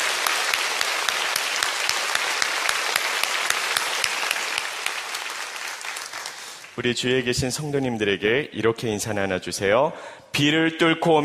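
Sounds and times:
audience applause: 0.0s - 6.8s
speech: 6.8s - 11.2s.

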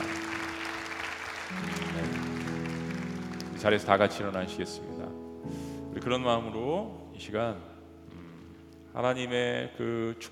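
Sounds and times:
audience applause: 0.0s - 4.3s
speech: 3.6s - 7.7s, 9.0s - 10.2s.

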